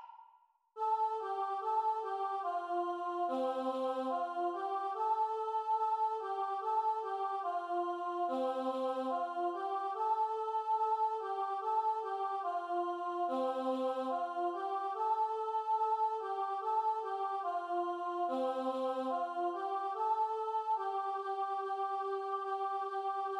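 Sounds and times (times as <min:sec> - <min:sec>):
solo voice chanting: 0:00.8 - 0:23.3.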